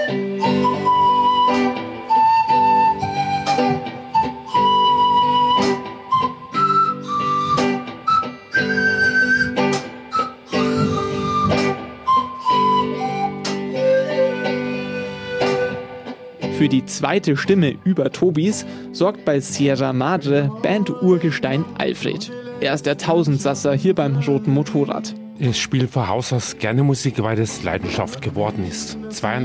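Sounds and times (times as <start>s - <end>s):
pan flute playing: 0.0s - 16.4s
speech: 16.8s - 29.4s.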